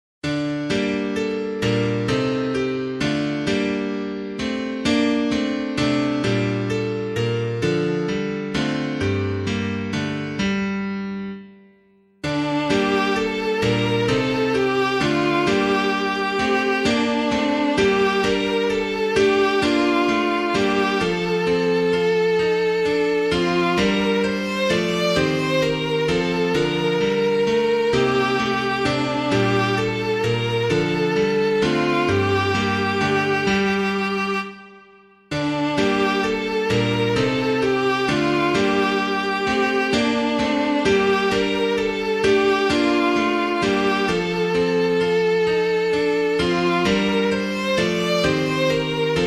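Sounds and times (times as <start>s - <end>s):
hymn on piano: 0.2s - 49.2s.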